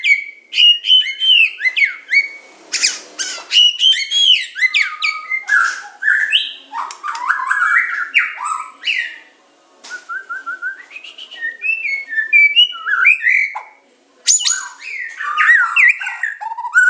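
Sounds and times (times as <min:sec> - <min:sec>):
Oriental magpie-robin song with whistles, buzzy trill and warbling: 0:00.0 - 0:09.3, 0:10.9 - 0:16.8.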